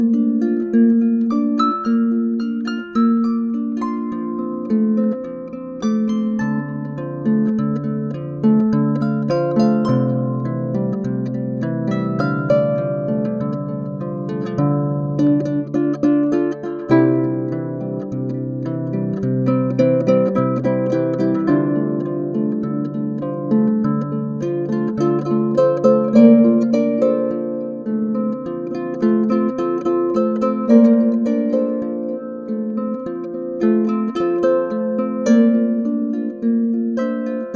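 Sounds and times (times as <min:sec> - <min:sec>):
harp: 0:00.0 - 0:37.5.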